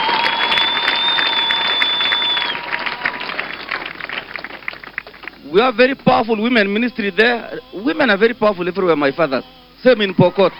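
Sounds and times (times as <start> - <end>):
audience clapping: 0.0 - 6.0
speech: 5.6 - 10.5.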